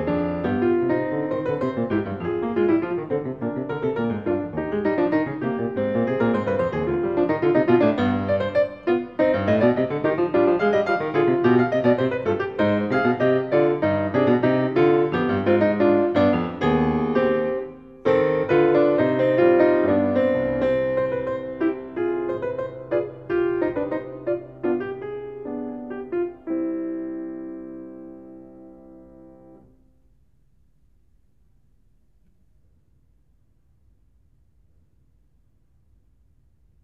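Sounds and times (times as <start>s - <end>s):
fugue in C minor: 0.0s - 27.4s.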